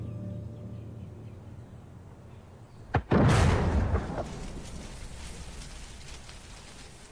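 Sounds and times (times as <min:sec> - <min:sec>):
artillery gun of the kind used against castles firing at a van: 0:02.9 - 0:04.5.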